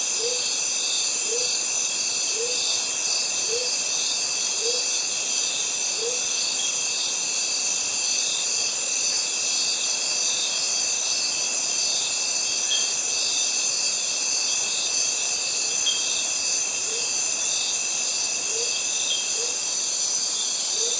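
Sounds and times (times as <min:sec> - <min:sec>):
cicadas in a Mediterranean forest: 0:00.0 - 0:20.9.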